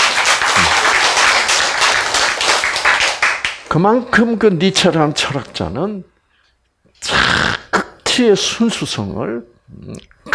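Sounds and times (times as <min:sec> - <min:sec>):
audience applause: 0:00.0 - 0:03.6
speech: 0:03.7 - 0:06.1, 0:08.2 - 0:10.2.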